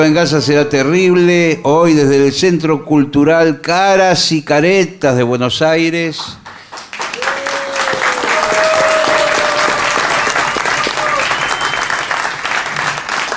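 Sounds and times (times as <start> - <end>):
speech: 0.0 - 6.4
audience applause: 6.4 - 13.3.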